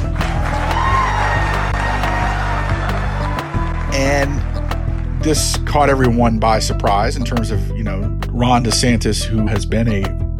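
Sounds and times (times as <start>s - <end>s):
crowd cheering: 0.0s - 5.2s
whoops: 0.2s - 3.9s
speech: 4.1s - 4.4s, 5.2s - 10.2s.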